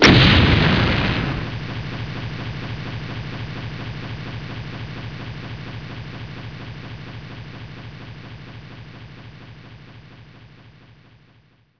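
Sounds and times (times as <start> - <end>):
explosion: 0.0 - 5.8.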